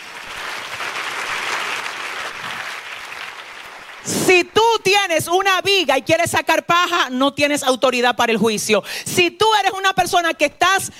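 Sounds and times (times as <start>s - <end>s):
audience applause: 0.0s - 4.2s
speech: 4.0s - 10.9s.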